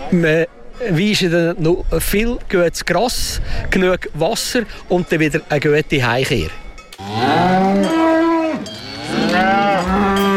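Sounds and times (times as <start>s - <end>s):
speech: 0.1s - 7.8s
cattle mooing during alpine cattle drive: 7.0s - 10.3s.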